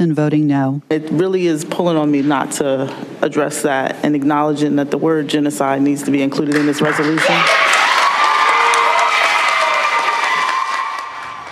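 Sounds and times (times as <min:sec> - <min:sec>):
speech: 0:00.0 - 0:07.6
people applauding at meeting: 0:06.4 - 0:11.5
people cheering at meeting: 0:06.8 - 0:11.5.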